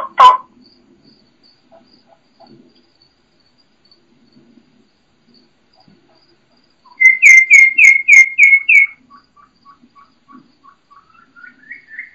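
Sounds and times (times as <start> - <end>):
wild turkey hen kee-kee calls: 6.8 - 12.1.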